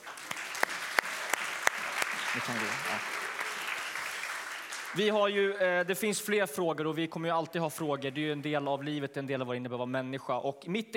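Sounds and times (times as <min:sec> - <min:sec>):
audience applause: 0:00.0 - 0:05.5
speech: 0:02.3 - 0:03.2, 0:04.9 - 0:10.9.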